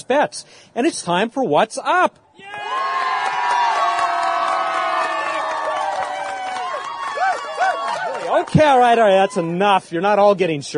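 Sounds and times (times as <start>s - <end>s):
speech: 0.1s - 3.0s, 8.3s - 10.7s
live crowd cheering: 2.4s - 9.8s.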